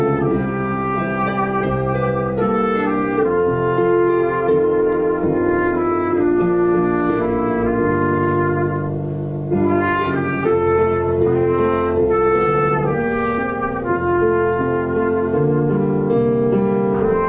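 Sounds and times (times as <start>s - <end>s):
piano playing a prelude: 0.0s - 17.2s
trumpet playing a prelude: 0.0s - 17.2s.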